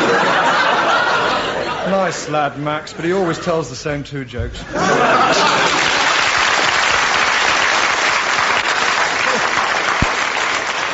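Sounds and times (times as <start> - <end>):
laughter: 0.4 - 2.7
speech: 2.1 - 5.9
audience applause: 5.1 - 10.9.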